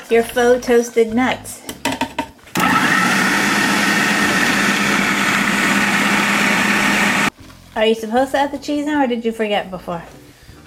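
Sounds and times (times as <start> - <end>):
speech: 0.1 - 1.7, 7.8 - 10.6
food processor grinding pesto leaves and oil: 2.6 - 7.3.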